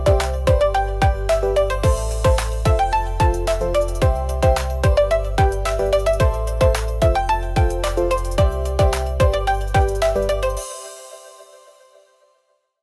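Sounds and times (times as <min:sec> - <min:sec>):
uplifting pop beat: 0:00.0 - 0:11.8.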